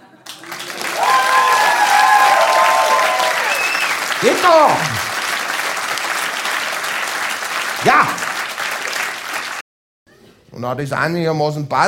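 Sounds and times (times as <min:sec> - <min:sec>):
audience applause: 0:00.2 - 0:09.6
voices cheering: 0:00.6 - 0:05.8, 0:07.6 - 0:09.5
speech: 0:04.2 - 0:05.0, 0:10.6 - 0:11.8.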